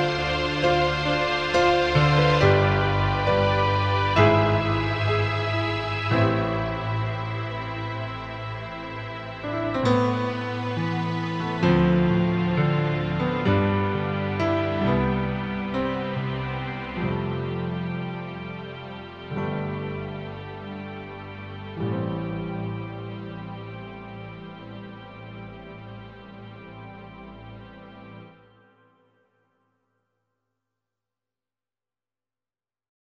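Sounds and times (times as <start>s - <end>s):
piano strings: 0.0s - 28.8s.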